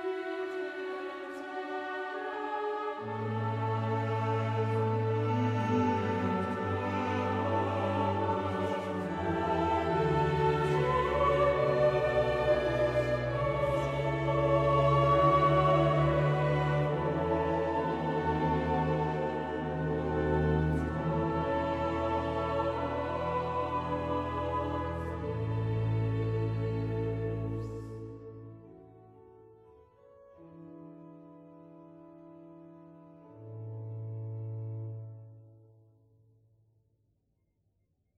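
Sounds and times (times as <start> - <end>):
choir: 0.0 - 29.0.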